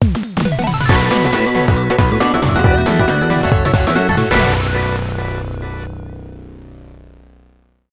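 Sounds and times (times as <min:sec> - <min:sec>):
victory battle music: 0:00.4 - 0:06.1.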